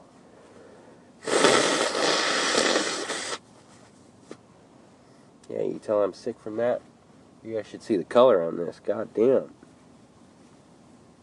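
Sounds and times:
nose blowing: 1.2 - 3.4
speech: 5.7 - 9.6.

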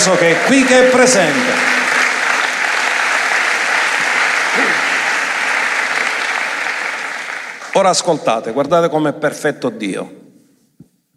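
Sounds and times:
speech: 0.0 - 1.8, 7.8 - 10.2
audience applause: 0.0 - 8.0.

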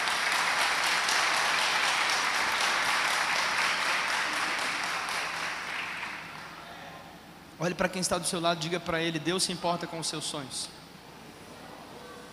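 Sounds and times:
audience applause: 0.0 - 6.6
speech: 7.6 - 10.8.

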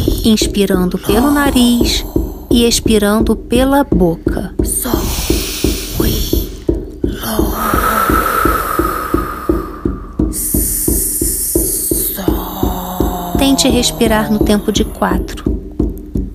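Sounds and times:
steady drumbeat for a guided journey: 0.0 - 16.3
speech: 0.2 - 5.0, 13.4 - 15.4.

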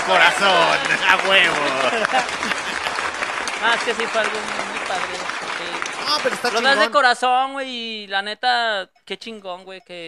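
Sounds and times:
laughter: 0.0 - 6.9
applause: 0.0 - 7.0
speech: 0.1 - 2.6, 3.6 - 10.0.

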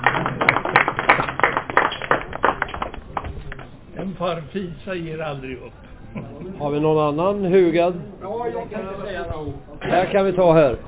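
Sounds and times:
audience applause: 0.0 - 3.3
speech: 4.2 - 10.8.

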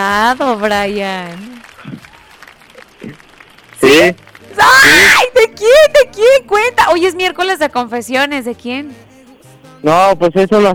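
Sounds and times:
speech: 0.0 - 1.5, 3.9 - 9.0, 9.8 - 10.7
audience applause: 0.0 - 5.8.

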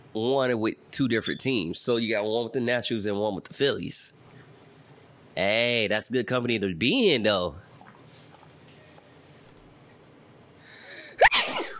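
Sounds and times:
speech: 0.2 - 4.2, 5.4 - 7.7
sneeze: 11.2 - 11.7.

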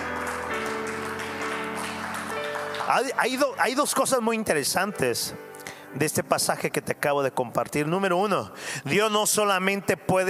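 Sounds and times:
audience applauding: 0.0 - 4.5
speech: 2.9 - 10.2.

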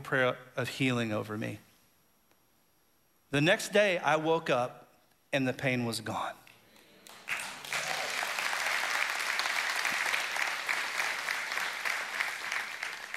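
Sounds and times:
speech: 0.0 - 1.7, 3.3 - 6.4
audience clapping: 6.8 - 13.1.

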